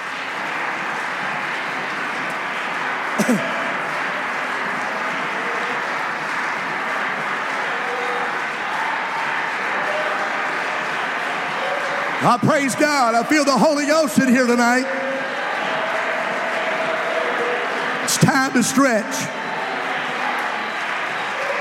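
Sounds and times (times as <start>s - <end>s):
audience clapping hands: 0.0s - 21.5s
speech: 3.2s - 3.6s, 12.2s - 15.0s, 18.1s - 19.4s.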